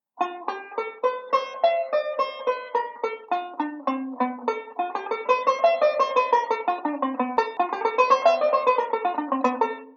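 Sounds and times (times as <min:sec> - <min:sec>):
banjo playing ii V speed drill: 0:00.0 - 0:09.9.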